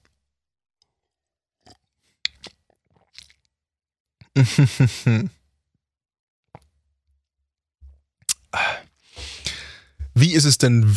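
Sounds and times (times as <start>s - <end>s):
person taking a quick sip of a drink: 1.6s - 3.5s, 8.3s - 9.6s
laughter: 4.4s - 5.3s
speech: 4.4s - 5.4s, 10.3s - 10.9s.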